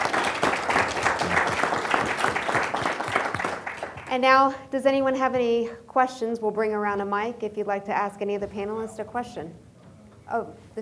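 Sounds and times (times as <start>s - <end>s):
audience applause: 0.0s - 4.1s
speech: 4.2s - 9.6s, 10.3s - 10.7s.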